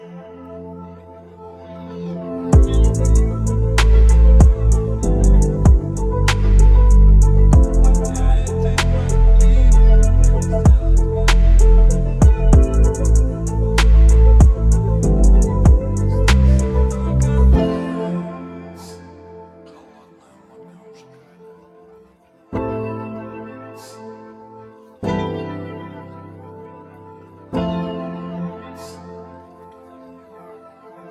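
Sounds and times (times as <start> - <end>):
karaoke instrumental backing track: 2.5 - 19.1.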